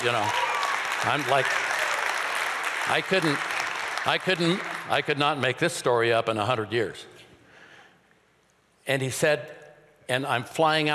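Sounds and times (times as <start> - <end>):
speech: 0.0 - 1.7, 2.9 - 7.2, 8.8 - 10.9
audience applause during a church testimony: 0.0 - 5.2.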